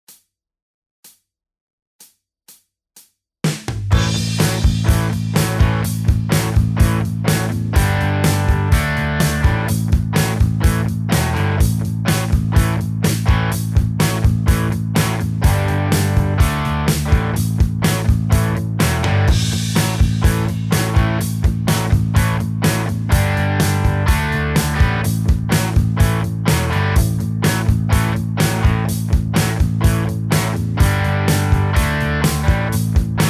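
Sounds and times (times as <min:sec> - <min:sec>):
blues guitar backing: 0:03.9 - 0:33.2.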